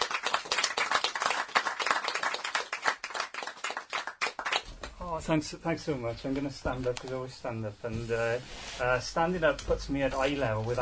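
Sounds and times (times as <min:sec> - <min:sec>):
audience applause: 0:00.0 - 0:04.7
speech: 0:05.1 - 0:10.8.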